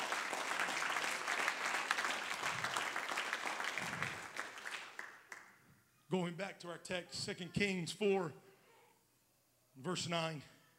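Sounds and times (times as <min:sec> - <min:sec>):
audience clapping hands: 0:00.0 - 0:05.6
speech: 0:06.1 - 0:08.4, 0:09.8 - 0:10.6.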